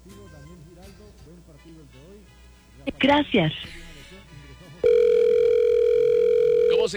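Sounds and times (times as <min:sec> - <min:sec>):
speech: 0:01.6 - 0:03.8
telephone steady single-pitched electronic tone: 0:04.8 - 0:06.9.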